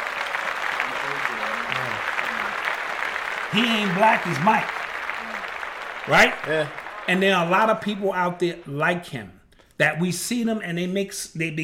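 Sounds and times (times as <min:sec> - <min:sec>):
clapping: 0:00.0 - 0:08.2
speech: 0:03.5 - 0:04.8, 0:06.1 - 0:11.6.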